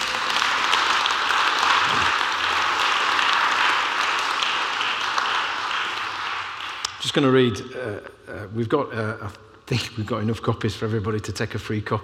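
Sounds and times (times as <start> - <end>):
audience applause: 0.0 - 6.9
speech: 7.1 - 12.0.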